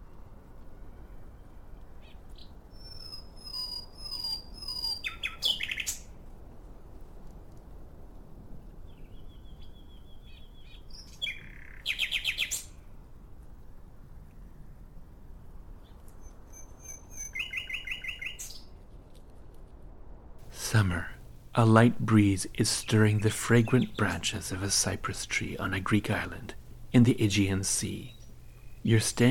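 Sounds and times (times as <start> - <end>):
nightingale singing perched on a branch: 2.4 - 6.1, 8.9 - 12.7, 16.2 - 18.7, 20.4 - 29.2
speech: 21.6 - 28.2, 28.8 - 29.2.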